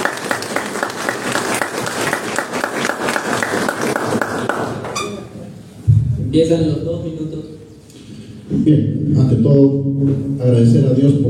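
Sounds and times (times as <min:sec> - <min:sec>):
audience applause: 0:00.0 - 0:04.9
speech: 0:06.4 - 0:07.6, 0:08.5 - 0:11.2.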